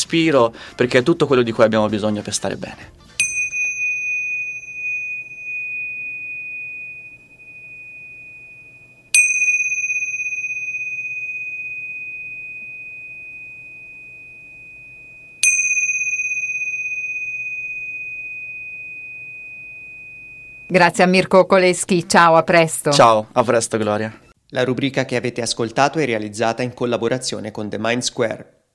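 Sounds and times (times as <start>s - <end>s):
speech: 0.1s - 3.1s, 20.7s - 28.6s
Tibetan cymbals struck and ringing: 3.2s - 21.0s.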